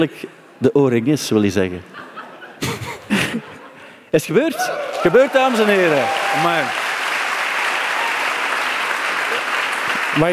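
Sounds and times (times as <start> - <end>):
speech: 0.0 - 2.7, 4.1 - 6.8, 10.2 - 10.3
laughter: 1.9 - 3.9
audience applause: 4.6 - 10.3.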